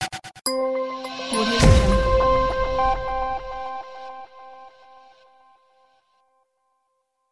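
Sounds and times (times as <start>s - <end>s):
high-tech logo sounds: 0.7s - 5.2s.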